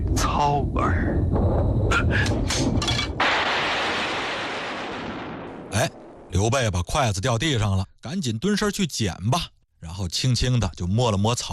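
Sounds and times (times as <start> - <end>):
thunderclap: 0.0 - 6.6
speech: 0.2 - 3.1, 5.8 - 11.5.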